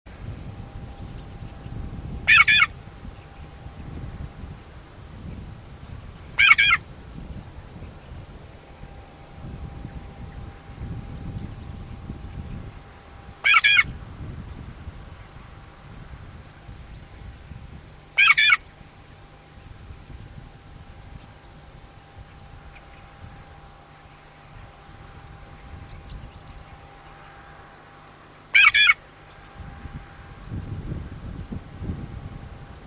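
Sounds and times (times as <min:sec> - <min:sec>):
shrike harsh calls: 0:02.3 - 0:03.6, 0:06.3 - 0:07.0, 0:12.6 - 0:14.0, 0:18.1 - 0:19.4, 0:21.4 - 0:29.7.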